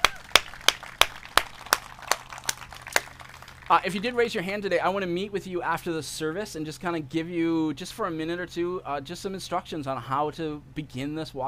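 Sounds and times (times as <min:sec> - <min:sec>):
audience clapping: 0:00.0 - 0:04.1
speech: 0:03.7 - 0:11.4.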